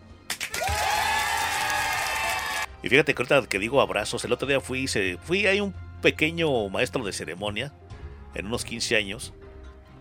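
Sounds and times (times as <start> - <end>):
audience applause: 0.3 - 2.7
sustained cheer or whoop: 0.5 - 2.7
speech: 2.8 - 7.8, 8.4 - 9.4.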